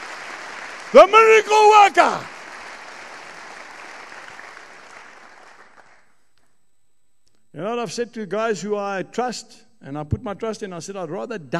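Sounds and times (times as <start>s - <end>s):
audience clapping: 0.0s - 6.2s
speech: 0.9s - 2.3s, 7.6s - 11.5s.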